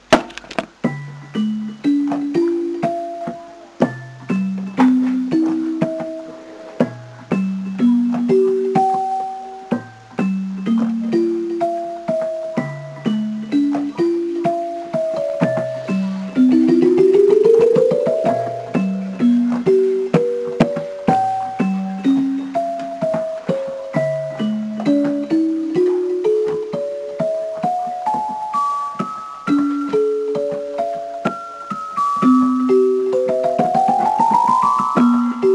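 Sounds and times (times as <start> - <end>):
lullaby music: 0.6 - 35.5.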